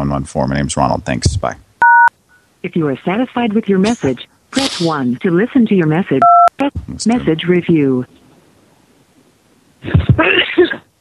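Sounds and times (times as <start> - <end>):
speech: 0.0 - 1.6, 2.6 - 8.2, 9.8 - 10.8
sneeze: 10.2 - 10.9.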